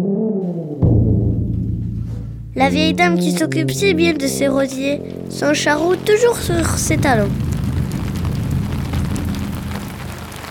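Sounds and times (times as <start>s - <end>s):
speech: 0.0s - 0.6s, 2.6s - 7.4s
bass drum tapped to imitate rolling thunder: 0.8s - 3.3s, 5.0s - 10.4s.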